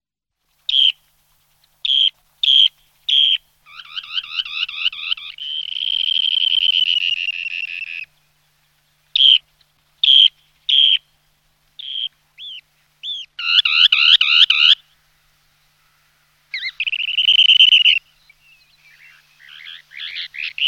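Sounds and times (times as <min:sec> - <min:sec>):
dunlin buzzy trill, twitters and harsh slurred calls: 0:01.8 - 0:08.2, 0:09.2 - 0:11.1, 0:11.8 - 0:14.8, 0:16.5 - 0:20.6.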